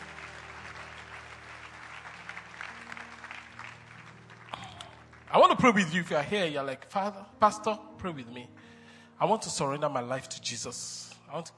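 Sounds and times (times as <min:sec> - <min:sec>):
audience applause: 0:00.0 - 0:05.6
speech: 0:05.3 - 0:11.5.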